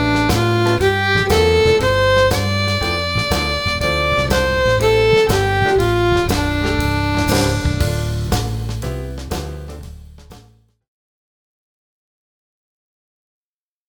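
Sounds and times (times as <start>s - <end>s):
D minor pentatonic scale played over one octave: 0.0s - 9.8s.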